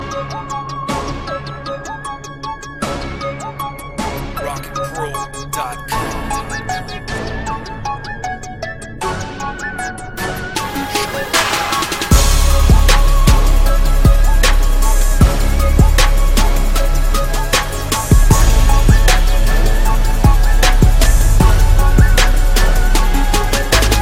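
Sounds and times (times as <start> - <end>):
hip hop beat: 0.0 - 24.0.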